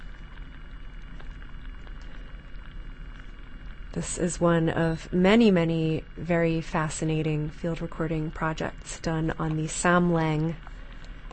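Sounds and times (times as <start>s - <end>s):
underwater crackle of seaweed and sea urchins: 0.0s - 3.9s, 8.2s - 11.3s
speech: 3.9s - 10.7s.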